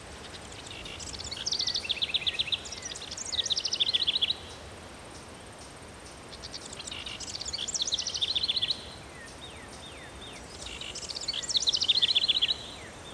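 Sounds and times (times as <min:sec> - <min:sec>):
birds: 0:00.0 - 0:13.1.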